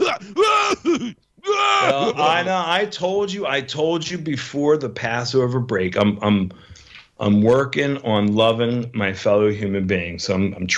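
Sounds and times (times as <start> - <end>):
person imitating coughing: 0.0 - 2.4
speech: 1.9 - 10.7.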